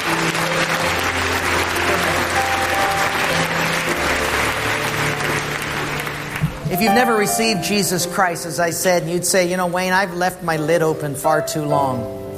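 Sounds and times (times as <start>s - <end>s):
audience applause at a church baby dedication: 0.0s - 8.0s
low sustained music: 0.0s - 12.3s
speech: 6.8s - 12.2s.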